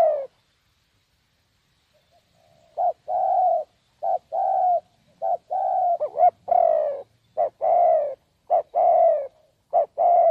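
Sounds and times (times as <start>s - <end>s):
spotted dove cooing: 0.0s - 0.4s, 2.3s - 10.2s.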